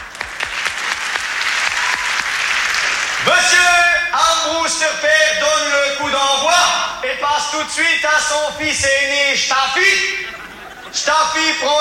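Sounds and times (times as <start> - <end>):
audience applause: 0.0 - 4.0
speech: 3.2 - 11.7
laughter: 8.2 - 11.7.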